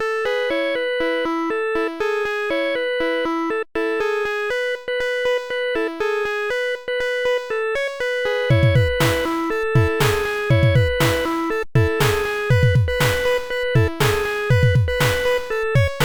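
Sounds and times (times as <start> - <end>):
instrumental music: 0.2 - 16.0.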